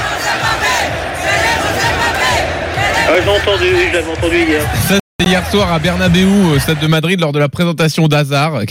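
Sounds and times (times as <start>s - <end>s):
Bernabéu stadium crowd in Madrid chanting Kylian Mbappé's name: 0.0s - 6.9s
speech: 3.2s - 8.6s.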